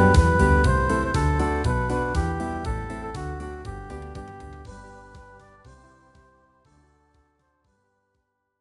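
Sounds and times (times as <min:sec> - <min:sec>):
circus songs backing track: 0:00.0 - 0:06.5.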